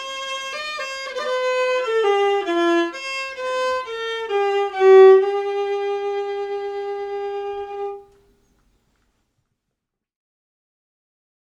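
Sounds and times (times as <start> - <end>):
viola waltz melody: 0.0 - 8.1.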